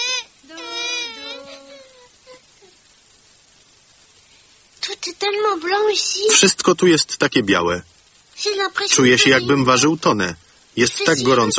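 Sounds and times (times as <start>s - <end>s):
baby crying: 0.0s - 2.7s
speech: 5.0s - 11.5s.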